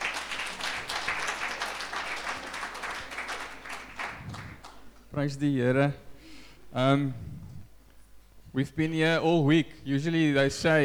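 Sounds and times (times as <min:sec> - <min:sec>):
audience clapping for worship band: 0:00.0 - 0:05.1
speech: 0:05.2 - 0:06.1, 0:06.8 - 0:07.4, 0:08.5 - 0:10.8.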